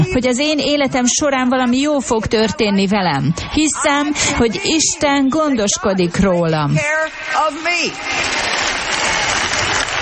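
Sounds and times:
speech: 0.0s - 8.7s
audience applause: 7.8s - 10.0s.

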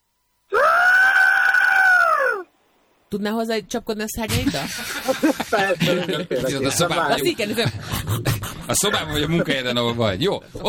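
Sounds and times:
human voice imitating a pterosaur screech: 0.6s - 2.5s
speech: 3.1s - 10.6s
laughter: 4.5s - 7.1s.

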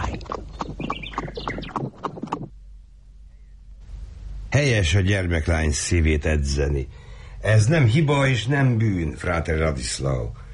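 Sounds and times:
horse hooves clattering as a joust begins: 0.0s - 2.5s
low hum: 0.0s - 10.5s
speech: 4.6s - 10.4s.

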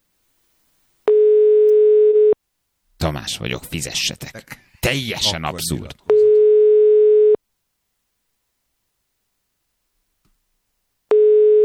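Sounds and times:
telephone tone on an unanswered call to an apartment landlord: 1.1s - 2.4s, 6.1s - 7.4s, 11.1s - 11.6s
speech: 3.0s - 6.1s.

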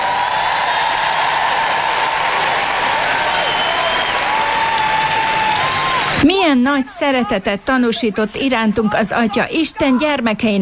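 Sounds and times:
crowd applauding: 0.0s - 6.2s
speech: 6.2s - 10.6s.

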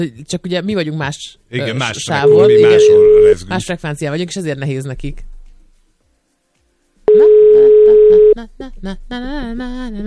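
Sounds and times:
speech: 0.0s - 5.3s, 8.4s - 10.0s
telephone line tone while placing a call: 2.2s - 3.4s, 7.1s - 8.4s.

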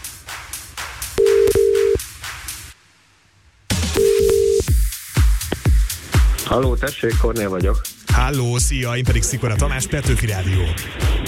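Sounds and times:
telephone tones dialing a caller for a radio phone-in game: 1.2s - 2.0s, 3.9s - 4.7s
speech: 6.5s - 11.2s.

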